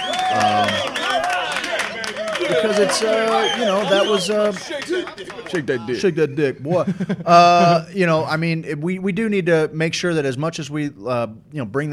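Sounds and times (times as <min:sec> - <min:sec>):
crowd applause sound effect: 0:00.0 - 0:06.1
people cheering and whooping: 0:00.0 - 0:06.1
laughter: 0:00.0 - 0:08.3
speech: 0:02.5 - 0:11.9.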